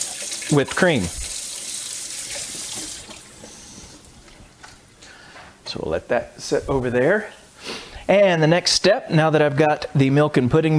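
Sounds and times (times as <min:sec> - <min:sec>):
kitchen tap running rinsing a pudding container: 0:00.0 - 0:03.6
speech: 0:00.5 - 0:01.2, 0:05.7 - 0:07.4, 0:08.1 - 0:10.7.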